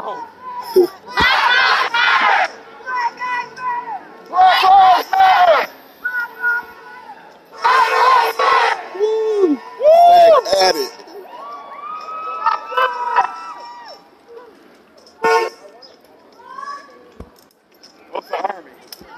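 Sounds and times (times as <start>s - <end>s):
protest crowd shouting and chanting in Niagara Square, Buffalo: 0.0s - 14.6s
scattered talk and calls: 0.0s - 19.1s
whistles: 6.0s - 6.7s.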